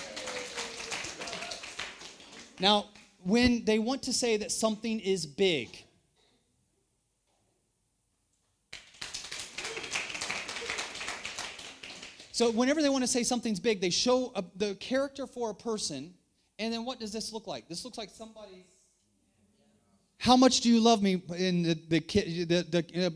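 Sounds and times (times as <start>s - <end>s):
audience clapping: 0.0s - 3.2s, 8.7s - 12.5s
speech: 2.6s - 5.8s, 12.4s - 18.8s, 20.2s - 23.1s.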